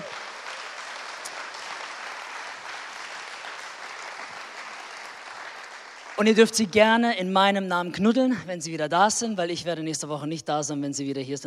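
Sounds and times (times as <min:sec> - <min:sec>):
audience applause in church: 0:00.0 - 0:06.6
speech: 0:06.2 - 0:11.4.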